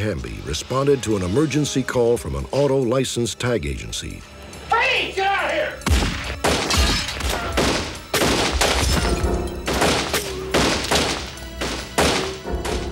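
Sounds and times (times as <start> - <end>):
speech: 0.0 - 5.2
gunfire ricocheting through a small auto license tag agency store in Catoosa Oklahoma: 5.9 - 12.9.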